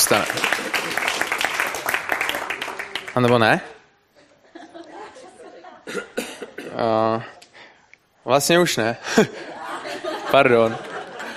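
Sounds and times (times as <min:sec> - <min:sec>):
audience applause: 0:00.0 - 0:03.6
speech: 0:00.1 - 0:01.1, 0:03.2 - 0:03.8, 0:06.8 - 0:07.3, 0:08.2 - 0:09.5, 0:10.3 - 0:10.9
laughter: 0:04.2 - 0:06.7, 0:09.0 - 0:11.3.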